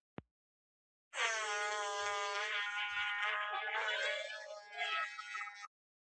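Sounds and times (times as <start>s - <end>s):
fart: 1.2s - 5.7s.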